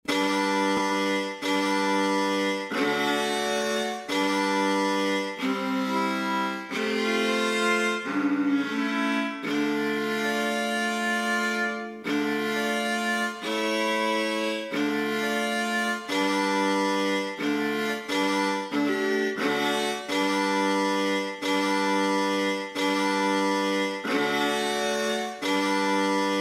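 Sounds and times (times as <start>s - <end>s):
lira chords: 0.1s - 26.3s.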